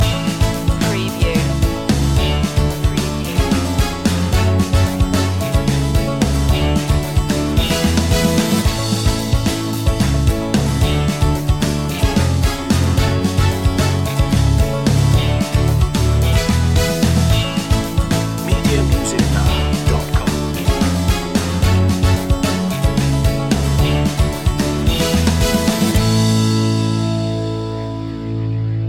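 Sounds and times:
power pop music: 0:00.0 - 0:28.7.

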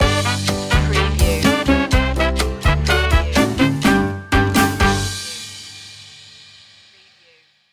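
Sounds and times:
Latin fiesta music stinger: 0:00.0 - 0:06.0.

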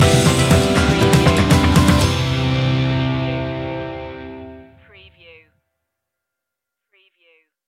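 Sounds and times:
warm welcome musical stinger: 0:00.0 - 0:04.7.

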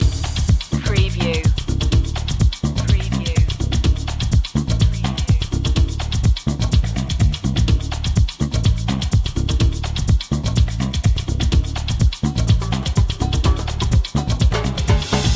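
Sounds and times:
cha cha chase music loop: 0:00.0 - 0:15.3.

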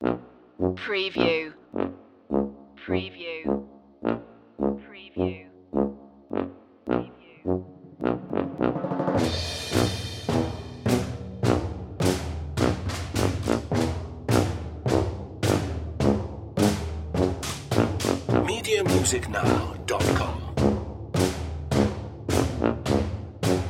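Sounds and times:
tuba: 0:00.0 - 0:23.6
percussion: 0:08.6 - 0:15.7, 0:16.6 - 0:23.6.

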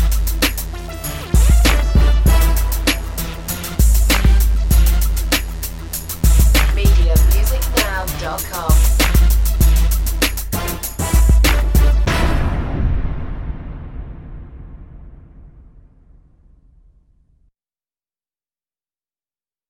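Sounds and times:
jersey club instrumental music: 0:00.0 - 0:12.4.

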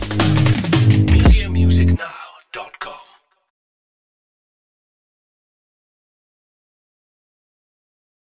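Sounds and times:
drums: 0:00.0 - 0:01.6
bass: 0:00.0 - 0:02.0.

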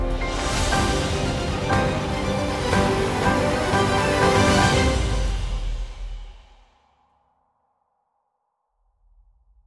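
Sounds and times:
instrumental music: 0:00.0 - 0:06.1.

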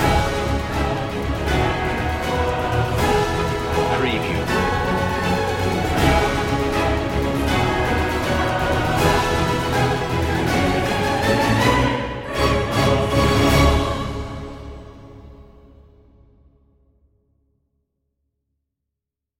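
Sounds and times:
full music mix: 0:00.0 - 0:14.4.

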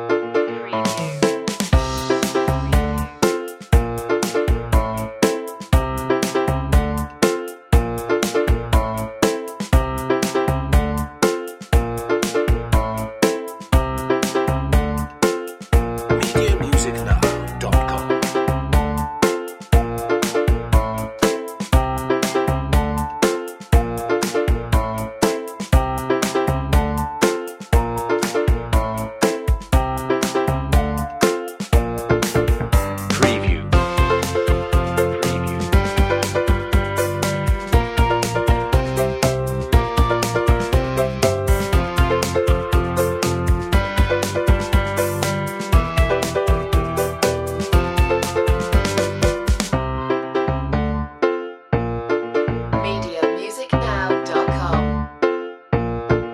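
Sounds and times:
fresh upbeat funky groovy music: 0:00.2 - 0:50.5, 0:51.8 - 0:56.3.

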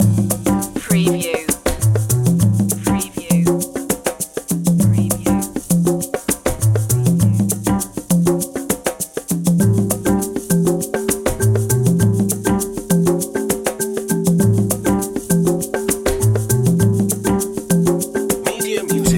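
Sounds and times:
jazzy opener music loop: 0:00.0 - 0:19.1.

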